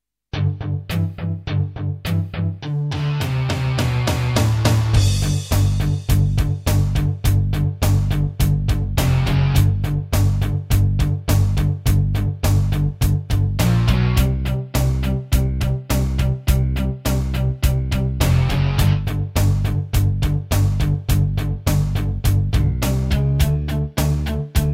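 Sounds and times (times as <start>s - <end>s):
rock guitar: 0.4s - 24.7s.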